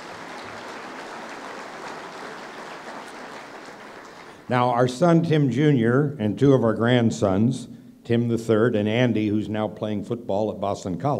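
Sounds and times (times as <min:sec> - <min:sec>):
audience applause: 0:00.0 - 0:04.5
speech: 0:04.5 - 0:11.1.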